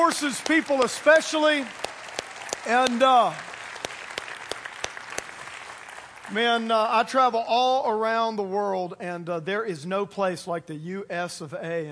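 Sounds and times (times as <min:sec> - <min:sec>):
speech: 0:00.0 - 0:01.9, 0:02.6 - 0:03.5, 0:06.3 - 0:11.9
crowd applauding the armed forces at a Fourth of July celebration: 0:00.0 - 0:07.3.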